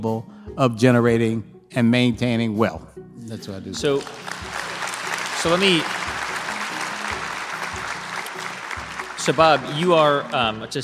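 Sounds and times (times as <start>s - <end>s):
speech: 0.0s - 4.4s, 5.4s - 6.0s, 9.2s - 10.8s
audience applause: 3.9s - 10.8s
crowd cheering: 4.0s - 10.8s.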